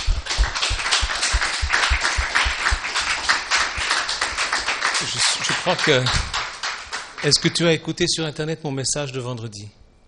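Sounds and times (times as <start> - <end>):
audience applause: 0.0 - 7.7
speech: 5.7 - 6.3, 7.2 - 9.8.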